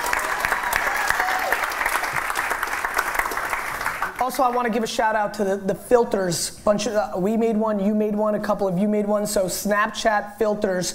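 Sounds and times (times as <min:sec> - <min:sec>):
round of applause: 0:00.0 - 0:04.7
speech: 0:04.3 - 0:10.9.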